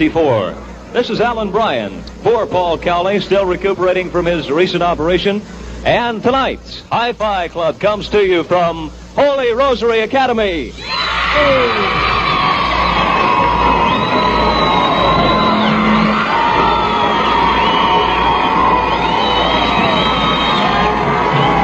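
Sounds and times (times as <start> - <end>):
speech: 0.0 - 12.0
crowd cheering and shouting: 10.8 - 21.6
high whistles and whoops: 10.8 - 21.6.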